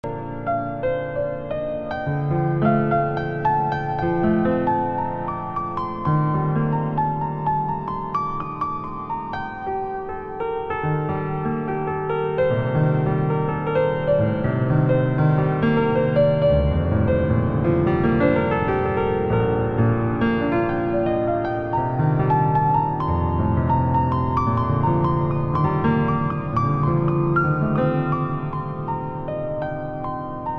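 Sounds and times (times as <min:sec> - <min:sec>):
piano: 0:00.0 - 0:30.5.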